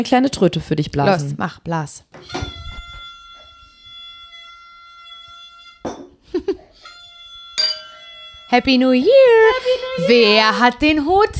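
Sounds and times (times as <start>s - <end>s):
speech: 0.0s - 2.5s, 8.5s - 11.3s
glasses clinking in a toast: 5.8s - 6.2s, 6.8s - 8.2s.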